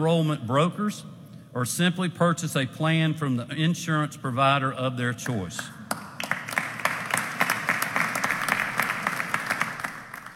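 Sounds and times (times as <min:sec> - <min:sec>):
speech: 0:00.0 - 0:06.0
crowd clapping: 0:05.6 - 0:10.3.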